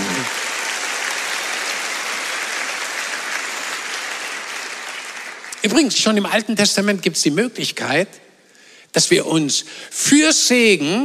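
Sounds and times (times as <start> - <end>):
audience applause: 0.0 - 6.3
speech: 5.6 - 8.3, 9.0 - 11.0.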